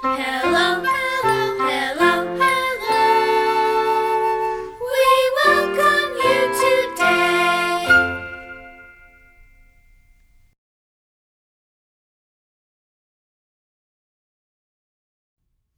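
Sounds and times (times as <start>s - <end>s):
song with vocals: 0.0s - 9.0s.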